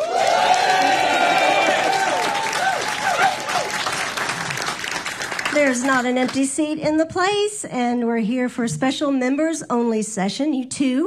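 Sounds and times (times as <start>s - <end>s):
cheering and whoops: 0.0s - 4.1s
audience applause: 0.0s - 6.4s
speech: 5.7s - 11.0s.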